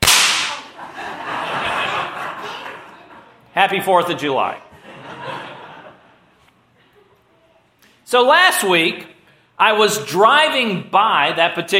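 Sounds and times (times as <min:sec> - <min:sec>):
small firework pop: 0:00.0 - 0:00.8
laughter: 0:00.5 - 0:03.5, 0:04.7 - 0:07.4
speech: 0:03.6 - 0:04.7, 0:08.1 - 0:11.7.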